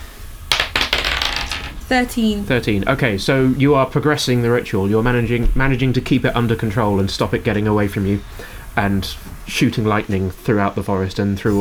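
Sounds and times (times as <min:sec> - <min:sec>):
dice clattering onto a hard surface: 0:00.5 - 0:01.9
speech: 0:01.9 - 0:11.6.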